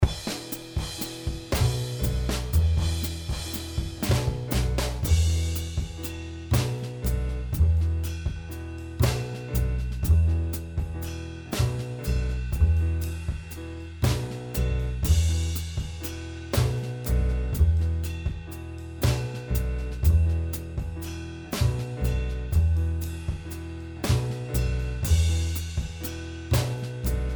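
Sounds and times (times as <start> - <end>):
improvised backing music: 0.0 - 27.3.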